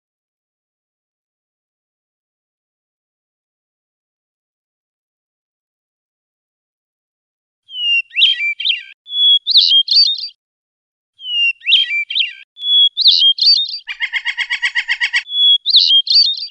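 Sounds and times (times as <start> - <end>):
Oriental magpie-robin singing rolling song: 7.7 - 10.4, 11.2 - 16.4.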